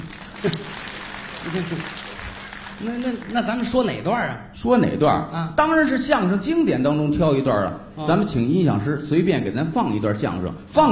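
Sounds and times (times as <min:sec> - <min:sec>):
audience applause: 0:00.0 - 0:04.0
speech: 0:00.4 - 0:00.8, 0:01.4 - 0:02.0, 0:02.8 - 0:10.9.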